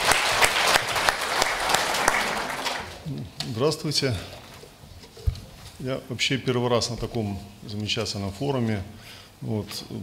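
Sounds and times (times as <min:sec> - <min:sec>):
audience applause at a forum: 0:00.0 - 0:03.0
speech: 0:03.6 - 0:04.4, 0:05.8 - 0:10.0.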